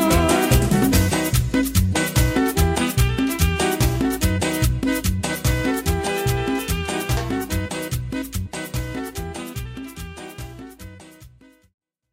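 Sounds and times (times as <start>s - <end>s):
drum intro at 145 BPM: 0.1s - 9.0s.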